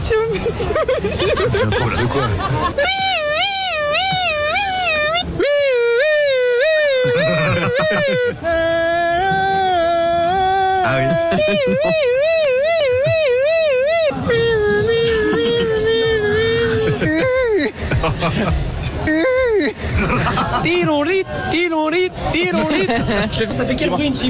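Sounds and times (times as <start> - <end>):
laughter: 0.3 - 8.7, 10.8 - 21.2, 22.4 - 23.8
speech: 0.4 - 3.0, 8.0 - 9.4, 10.8 - 12.3, 18.0 - 18.7, 20.0 - 24.2
several voices imitating a police siren: 2.0 - 9.6, 10.2 - 17.6.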